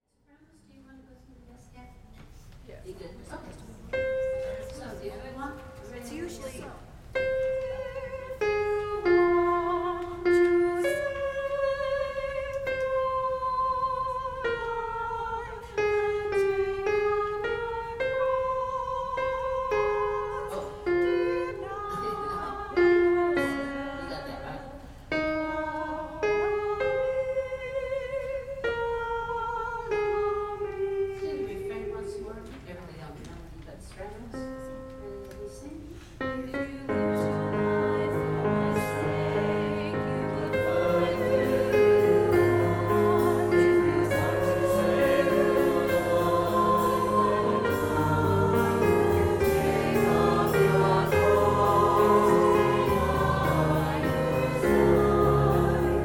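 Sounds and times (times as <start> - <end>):
hymn with descant singing: 7.2 - 31.2, 36.2 - 56.0.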